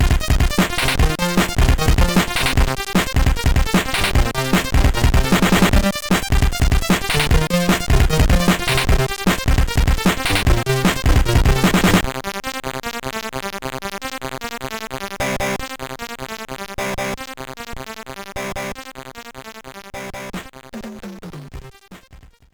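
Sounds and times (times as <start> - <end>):
SID chip main menu game music: 0.0 - 12.0.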